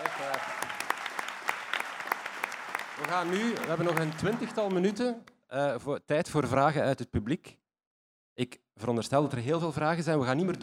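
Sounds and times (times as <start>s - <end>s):
audience applause for a singer: 0.0s - 5.1s
speech: 3.0s - 7.6s, 8.4s - 10.6s.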